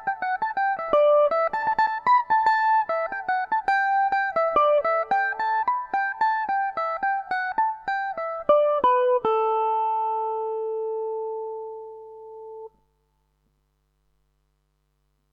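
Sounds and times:
Irish mandolin in A mixolydian: 0:00.0 - 0:12.0.

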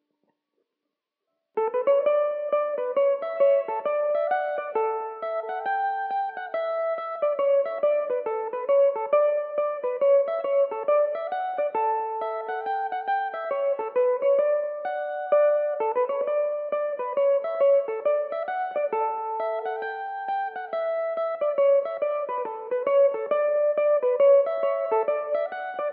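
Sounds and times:
Irish mandolin playing in D major: 0:01.6 - 0:25.9.

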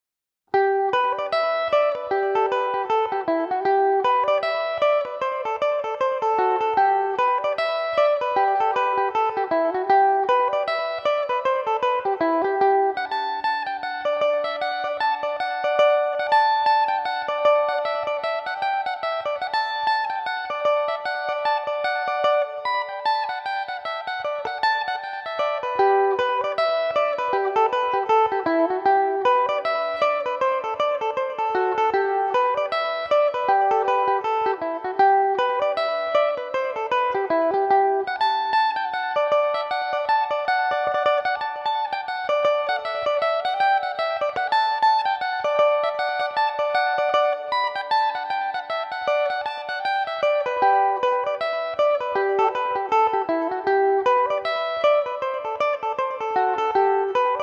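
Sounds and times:
Irish mandolin playing: 0:00.5 - 0:57.4.

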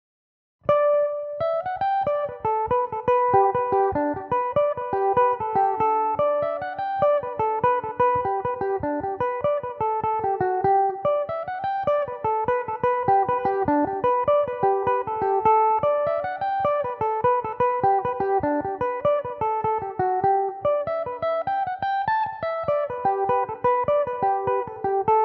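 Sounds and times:
Irish mandolin jig in G major: 0:01.2 - 0:25.2.

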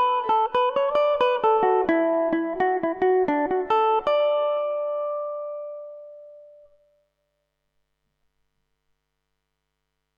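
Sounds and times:
Irish mandolin playing a jig in D major: 0:00.0 - 0:06.6.

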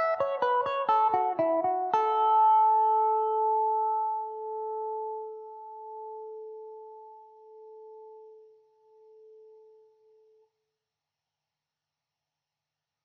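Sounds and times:
Irish mandolin mandobird in A major: 0:00.0 - 0:07.3.

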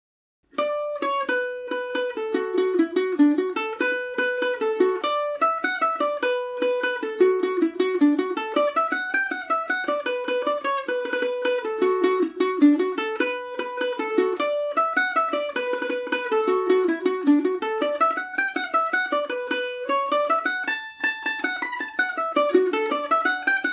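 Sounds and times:
Irish mandolin tune in B minor: 0:00.5 - 0:23.7.

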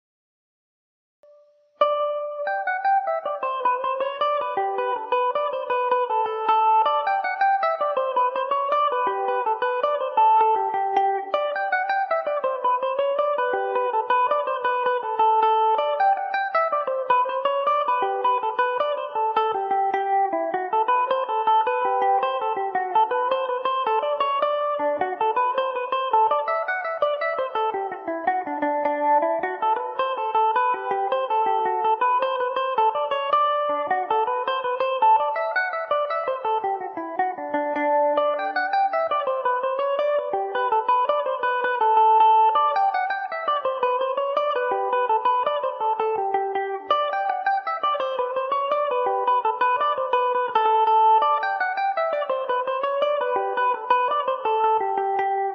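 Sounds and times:
Irish mandolin in G major: 0:01.3 - 0:55.5.

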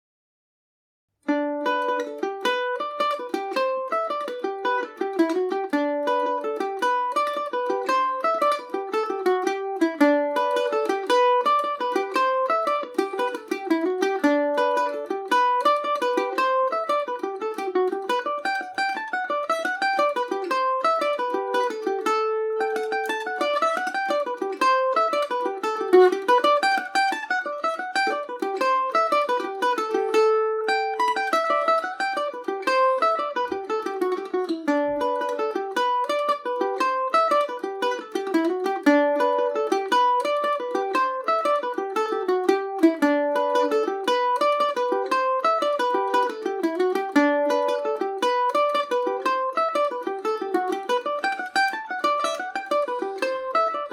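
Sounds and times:
Irish mandolin in G major: 0:01.2 - 0:53.9.

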